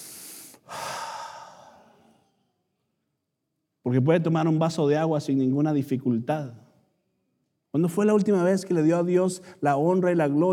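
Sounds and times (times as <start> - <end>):
deep breath: 0.0 - 2.4
speech: 3.8 - 6.6, 7.7 - 10.5.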